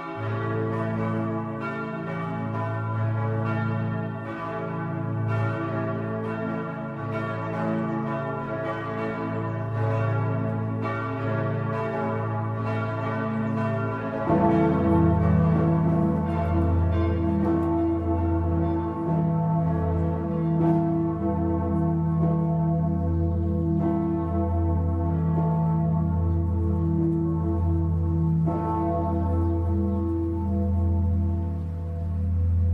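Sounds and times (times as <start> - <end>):
church bells of St. Peter's Basilica ringing: 0.0 - 32.7.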